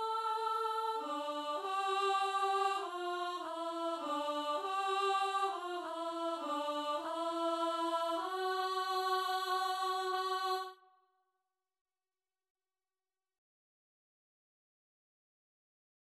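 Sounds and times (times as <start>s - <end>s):
soprano singing: 0.0s - 10.8s.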